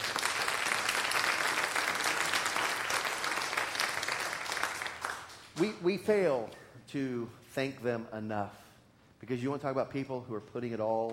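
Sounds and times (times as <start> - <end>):
applause: 0.0 - 5.6
speech: 5.6 - 8.6, 9.2 - 11.1.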